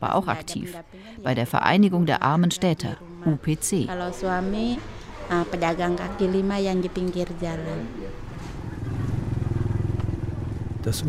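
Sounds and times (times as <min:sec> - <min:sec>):
speech: 0:00.0 - 0:08.2, 0:10.8 - 0:11.0
motorcycle riding through city street: 0:05.7 - 0:11.0.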